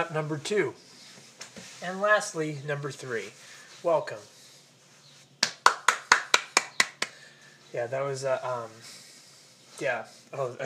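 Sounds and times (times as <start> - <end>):
speech: 0.0 - 1.0, 1.8 - 4.4, 7.7 - 9.0, 9.8 - 10.6
hand claps: 5.4 - 7.2.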